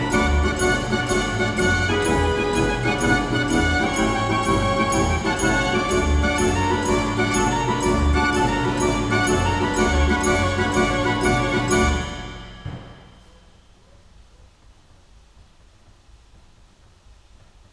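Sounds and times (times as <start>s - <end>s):
draaiorgel street organ playing: 0.0s - 13.4s.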